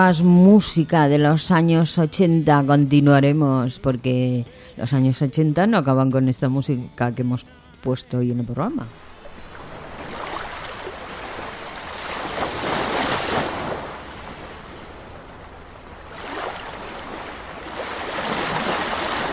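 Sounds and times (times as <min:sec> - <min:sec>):
speech: 0:00.0 - 0:09.0
sea waves breaking: 0:08.9 - 0:19.3.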